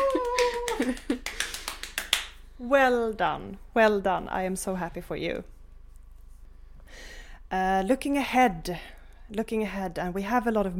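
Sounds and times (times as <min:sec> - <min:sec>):
hand clapping: 0:00.0 - 0:02.4
speech: 0:00.8 - 0:01.1, 0:02.6 - 0:05.6, 0:07.5 - 0:10.7.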